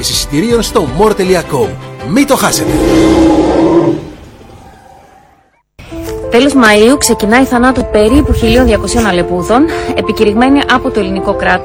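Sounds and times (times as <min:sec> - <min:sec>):
speech: 0:00.0 - 0:04.1, 0:06.3 - 0:11.6
dinosaur roar effect for a touring Jurassic Planet dinosaur show: 0:02.3 - 0:05.4.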